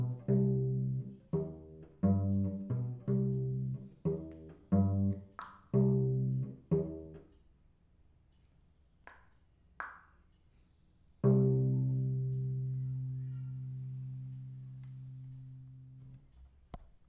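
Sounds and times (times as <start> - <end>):
cello solo: 0.0 - 7.3, 11.2 - 15.9.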